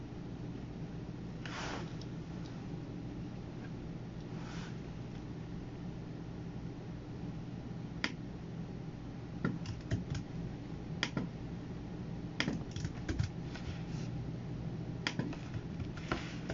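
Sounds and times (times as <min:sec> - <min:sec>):
steady low hum: 0:00.0 - 0:16.5
soft brushing noises: 0:01.4 - 0:02.8, 0:04.3 - 0:05.0, 0:13.4 - 0:14.2, 0:15.9 - 0:16.5
computer keyboard and mouse clicks: 0:09.4 - 0:10.2, 0:12.4 - 0:13.4, 0:15.1 - 0:16.5.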